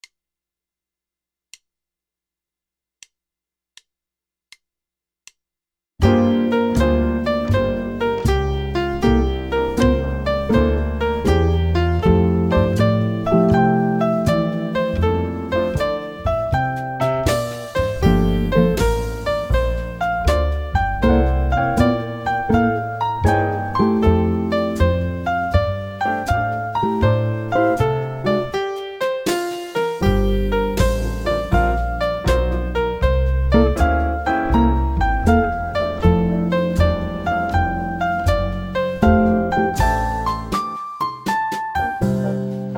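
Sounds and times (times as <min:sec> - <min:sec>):
swing jazz two-five-one progression in F major at 80 bpm: 0:06.0 - 0:42.7.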